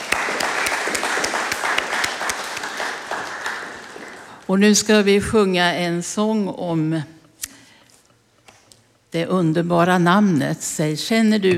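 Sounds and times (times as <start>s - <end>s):
audience applause: 0.0s - 4.5s
speech: 4.5s - 7.2s, 9.1s - 11.5s.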